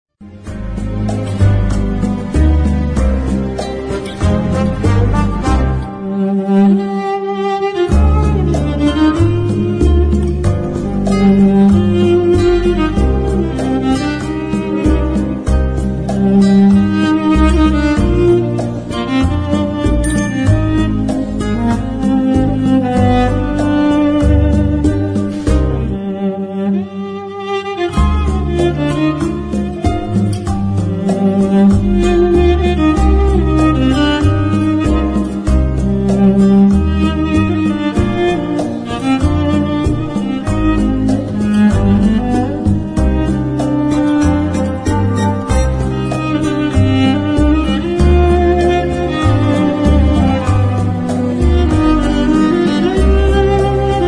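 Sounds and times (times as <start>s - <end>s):
cello: 0.2s - 54.0s.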